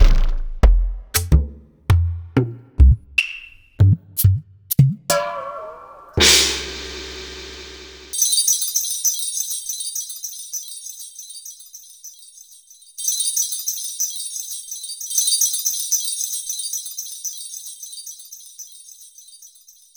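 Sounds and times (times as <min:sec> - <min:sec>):
Roland MV8800 ethnic drum kit: 0:00.0 - 0:08.2.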